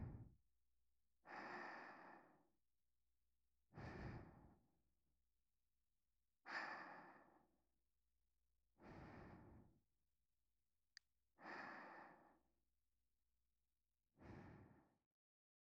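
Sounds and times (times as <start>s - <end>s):
sleep breathing: 1.3s - 2.4s, 3.8s - 4.6s, 6.5s - 7.5s, 8.8s - 9.7s, 11.4s - 12.4s, 14.2s - 14.9s.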